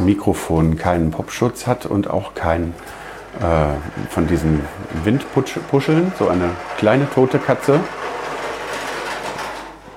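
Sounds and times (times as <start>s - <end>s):
speech: 0.1s - 8.1s
child's ride-on toy car rolling: 2.7s - 9.9s.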